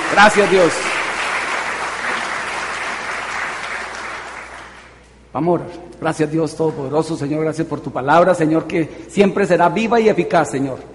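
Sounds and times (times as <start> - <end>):
audience applause: 0.0 - 5.0
speech: 0.1 - 1.0, 5.3 - 10.9.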